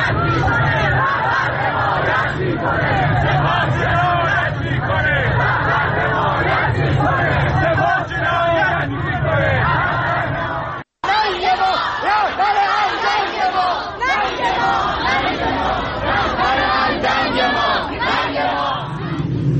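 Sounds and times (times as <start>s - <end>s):
protest crowd chanting slogans: 0.0s - 19.5s.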